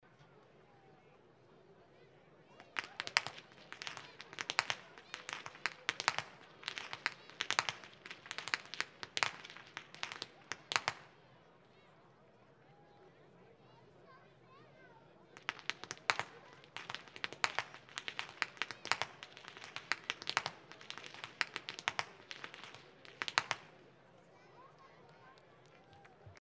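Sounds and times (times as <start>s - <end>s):
youth whip cracking: 2.6s - 11.1s, 15.4s - 23.7s.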